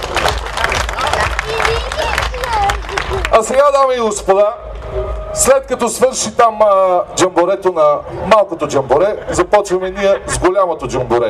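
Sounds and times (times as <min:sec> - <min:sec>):
enthusiastic audience applause: 0:00.0 - 0:04.3
speech: 0:03.4 - 0:11.2.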